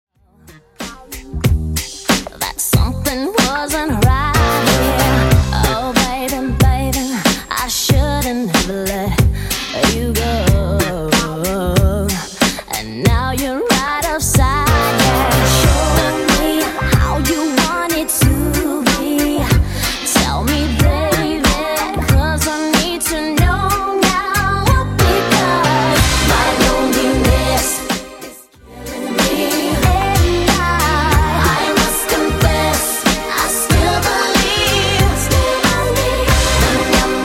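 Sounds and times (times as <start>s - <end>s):
90s DJ beat: 0.5s - 37.2s.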